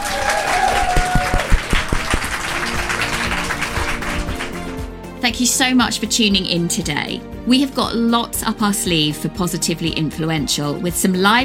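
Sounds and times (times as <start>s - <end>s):
big round of applause: 0.0s - 4.9s
speech: 5.3s - 11.4s.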